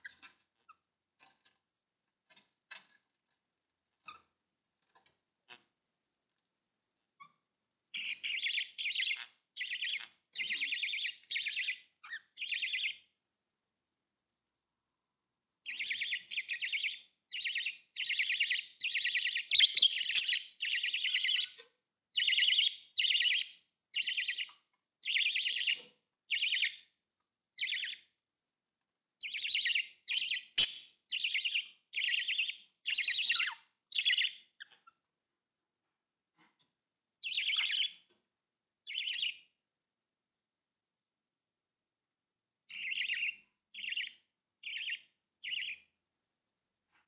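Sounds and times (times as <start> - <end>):
budgerigar chirping: 8.0 - 13.0, 15.6 - 21.6, 22.2 - 26.8, 27.6 - 28.0, 29.2 - 34.9, 37.2 - 38.0, 38.9 - 39.4, 42.7 - 45.9.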